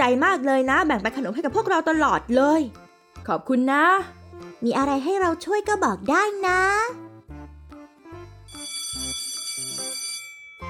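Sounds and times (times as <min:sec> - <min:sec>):
speech: 0:00.1 - 0:07.0
school bell buzzer: 0:08.5 - 0:10.6.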